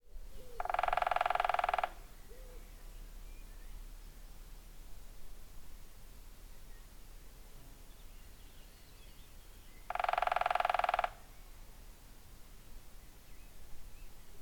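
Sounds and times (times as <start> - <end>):
woodpecker drumming in a fast machine-gun roll of taps: 0.6 - 2.2, 9.8 - 11.4.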